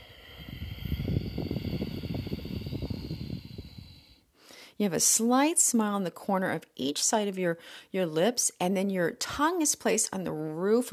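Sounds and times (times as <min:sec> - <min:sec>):
ujjayi sea wind breath exhale: 0:00.0 - 0:04.8
speech: 0:04.8 - 0:10.9.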